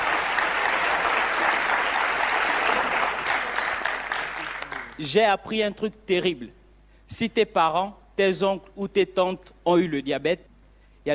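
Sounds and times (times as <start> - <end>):
audience applause: 0.0 - 5.0
speech: 5.0 - 11.1.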